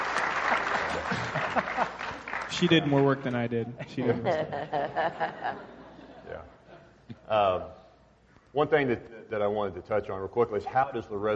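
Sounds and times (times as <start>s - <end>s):
audience applause: 0.0s - 3.3s
laughter: 0.5s - 2.3s, 3.6s - 7.0s
speech: 2.6s - 6.5s, 7.3s - 7.8s, 8.5s - 11.3s.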